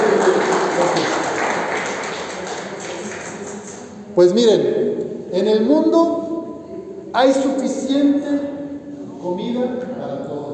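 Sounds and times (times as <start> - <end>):
audience applause: 0.0 - 3.8
speech: 4.2 - 6.2, 7.1 - 8.5, 9.3 - 10.4.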